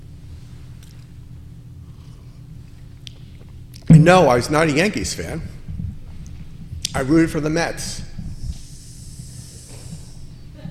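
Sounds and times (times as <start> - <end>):
speech: 4.0 - 5.5, 6.9 - 8.1
person hissing: 8.5 - 10.3.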